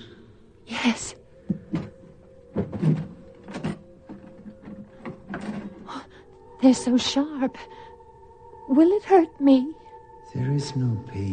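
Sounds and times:
speech: 0:00.8 - 0:01.6, 0:06.6 - 0:07.8, 0:08.7 - 0:11.3
drawer being opened: 0:01.7 - 0:05.9.

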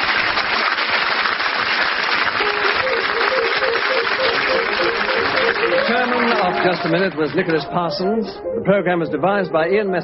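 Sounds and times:
studio audience applause: 0:00.0 - 0:07.9
speech: 0:06.6 - 0:10.0.

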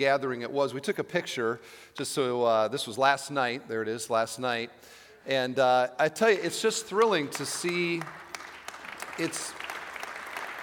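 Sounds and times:
speech: 0:00.0 - 0:08.2, 0:09.2 - 0:09.6
audience applause: 0:07.0 - 0:10.6.

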